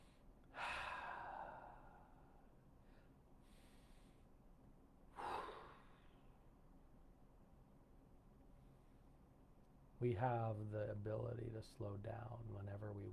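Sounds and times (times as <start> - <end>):
deep belly breaths during a guided breathing exercise: 0.0 - 4.4, 5.1 - 6.4
speech: 10.0 - 13.1.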